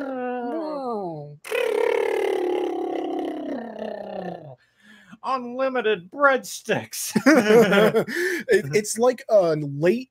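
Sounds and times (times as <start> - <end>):
voice imitating futuristic flying car noise: 0.0 - 4.6
speech: 5.3 - 10.0
laughter: 7.1 - 8.8.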